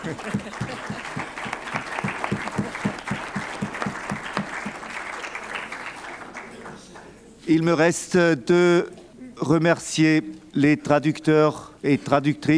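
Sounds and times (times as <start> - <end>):
speech: 0.0 - 1.2, 7.5 - 12.5
applause approving a text by acclamation: 0.0 - 7.6
laughter: 0.0 - 12.5.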